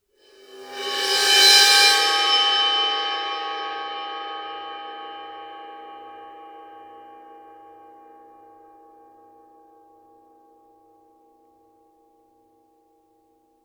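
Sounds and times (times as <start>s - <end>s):
bowed suspended cymbal crash: 0.4s - 6.9s.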